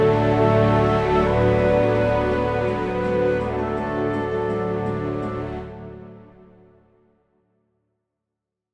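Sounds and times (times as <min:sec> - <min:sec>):
orchestral ambient wind music: 0:00.0 - 0:07.0.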